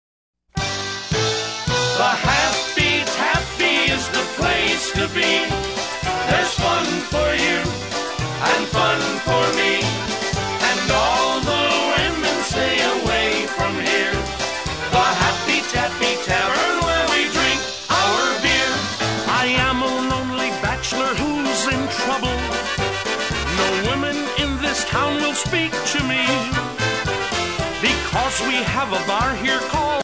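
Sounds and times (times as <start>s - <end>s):
polka music: 0.5s - 30.0s.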